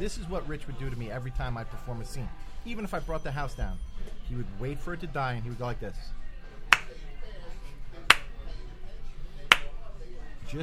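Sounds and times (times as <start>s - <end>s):
speech: 0.0s - 6.2s
slow sarcastic hand clap: 6.7s - 7.0s, 8.1s - 8.3s, 9.5s - 9.7s.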